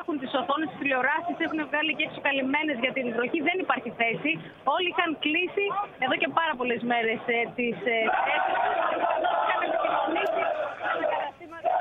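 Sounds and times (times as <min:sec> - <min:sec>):
speech: 0:00.3 - 0:09.3
large crowd singing and cheering before match: 0:08.0 - 0:11.8.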